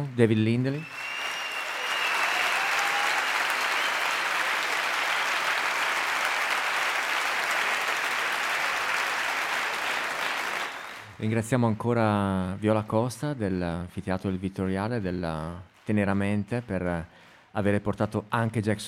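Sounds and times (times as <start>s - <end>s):
audience applause: 0.0s - 11.1s
speech: 0.1s - 1.0s, 11.2s - 18.8s.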